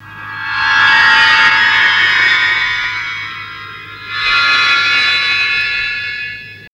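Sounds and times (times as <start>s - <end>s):
glass effects and sweeps: 0.0s - 6.7s.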